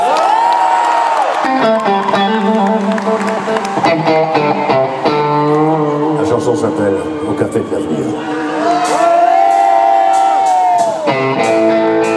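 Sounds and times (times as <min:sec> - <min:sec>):
high whoops and shouts: 0:00.0 - 0:02.3, 0:07.1 - 0:11.2
concert crowd applauding and cheering: 0:00.0 - 0:12.1
speech: 0:06.5 - 0:09.0.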